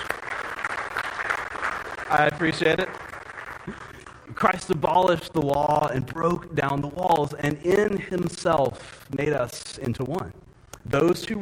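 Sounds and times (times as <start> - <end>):
crowd applauding: 0.0 - 4.8
speech: 2.1 - 3.0, 4.4 - 11.3.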